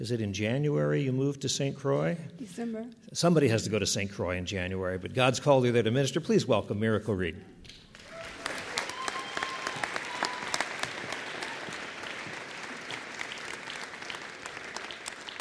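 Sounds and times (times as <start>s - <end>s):
speech: 0.0s - 7.8s
audience applause: 7.9s - 15.3s.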